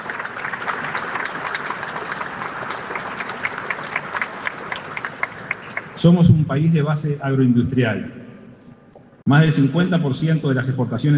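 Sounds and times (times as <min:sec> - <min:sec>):
large audience applause: 0:00.0 - 0:06.1
speech: 0:06.0 - 0:08.2, 0:09.3 - 0:11.1.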